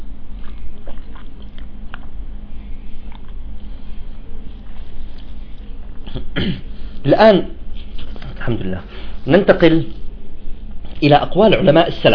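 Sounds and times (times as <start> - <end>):
steady low hum: 0.0 - 12.1
person sipping and swallowing water: 0.3 - 7.0
speech: 6.4 - 7.6, 8.4 - 10.0, 11.0 - 12.1.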